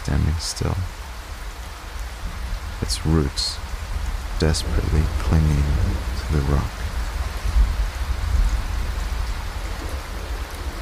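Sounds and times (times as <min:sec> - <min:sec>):
low storm wind gusts: 0:00.0 - 0:10.8
steady heavy storm rain: 0:00.0 - 0:10.8
speech: 0:00.1 - 0:01.0, 0:02.8 - 0:03.7, 0:04.4 - 0:06.8.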